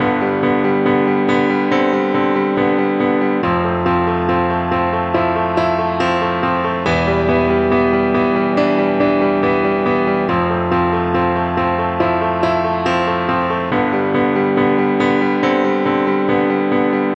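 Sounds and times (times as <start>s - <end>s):
piano ringtone: 0.0s - 17.1s.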